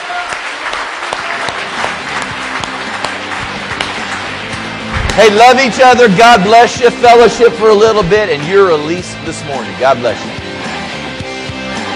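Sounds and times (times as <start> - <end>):
audience clapping: 0.0 - 6.6
speech: 5.2 - 10.4.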